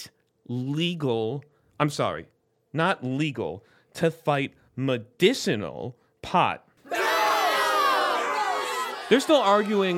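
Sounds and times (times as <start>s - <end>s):
speech: 0.0s - 6.7s, 9.1s - 9.9s
studio audience shouting together: 6.9s - 9.9s.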